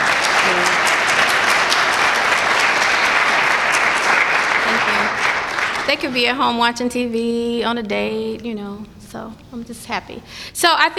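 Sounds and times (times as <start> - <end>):
audience applause: 0.0 - 6.4
speech: 5.9 - 10.9.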